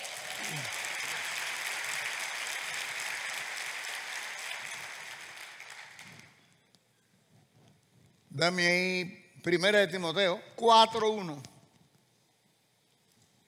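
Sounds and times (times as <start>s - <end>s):
audience applause: 0.0s - 6.4s
speech: 8.4s - 11.5s.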